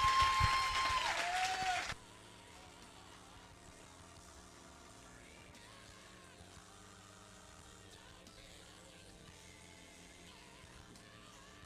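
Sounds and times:
audience applause welcoming a speaker: 0.0 - 2.0.

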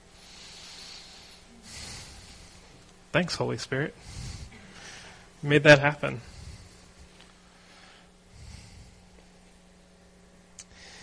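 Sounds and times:
deep breath: 0.1 - 2.8, 4.0 - 5.3, 6.2 - 6.8, 7.4 - 9.2, 10.6 - 11.0
speech: 3.1 - 4.2, 5.4 - 6.3.

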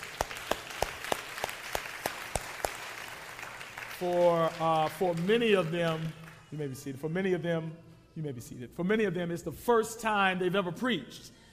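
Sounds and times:
audience applause: 0.0 - 6.4
speech: 4.0 - 11.4.

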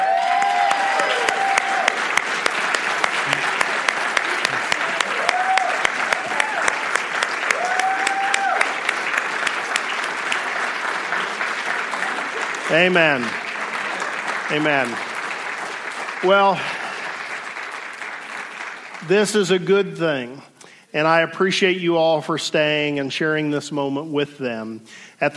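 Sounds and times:
whoops and cheers: 0.0 - 2.0, 4.8 - 8.8
audience clapping: 0.0 - 20.2
speech: 12.8 - 13.4, 14.5 - 15.1, 16.2 - 16.8, 19.1 - 25.3.

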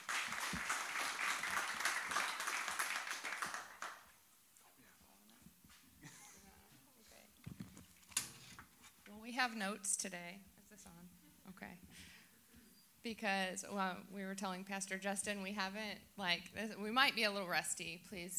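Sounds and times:
audience applause welcoming two guest speakers: 0.0 - 4.2
speech: 9.4 - 12.2, 13.0 - 18.3.

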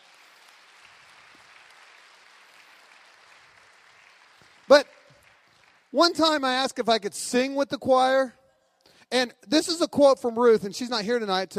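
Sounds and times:
audience applause for the choir: 0.0 - 6.3
speech: 4.7 - 5.0, 5.9 - 8.4, 9.1 - 11.5.

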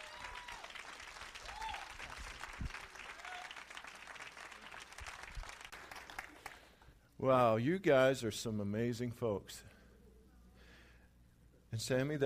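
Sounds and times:
faint cheers and whoops: 0.0 - 0.8, 1.4 - 2.1, 3.0 - 3.7
crowd clapping: 0.0 - 6.8
speech: 7.2 - 9.7, 11.8 - 12.2.

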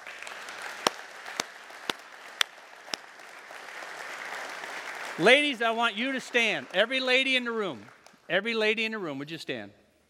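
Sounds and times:
audience round of applause: 0.0 - 7.0
speech: 5.2 - 9.8.

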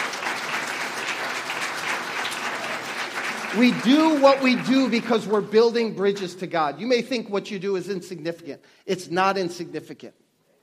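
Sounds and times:
audience clapping: 0.0 - 6.3
speech: 3.5 - 10.2.

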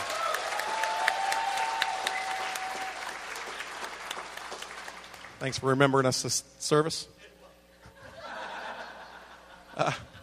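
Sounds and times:
audience clapping: 0.0 - 5.7
speech: 5.4 - 7.2, 9.8 - 10.1
laughter: 7.8 - 10.2.

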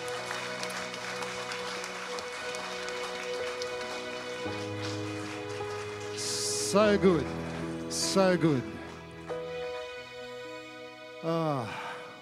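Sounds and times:
applause: 0.0 - 9.6
speech: 4.4 - 5.0, 6.7 - 8.8, 11.2 - 11.8.

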